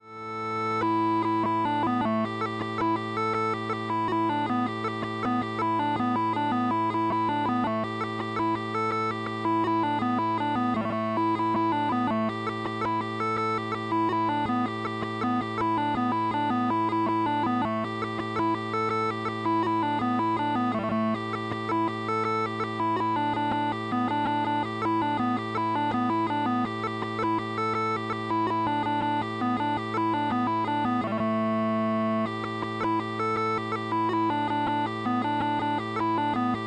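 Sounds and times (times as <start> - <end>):
waltz music: 0.0 - 36.6.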